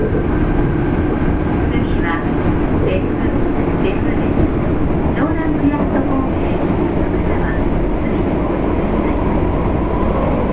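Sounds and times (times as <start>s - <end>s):
Fukuoka city subway 3000 series train rumble: 0.0s - 10.5s.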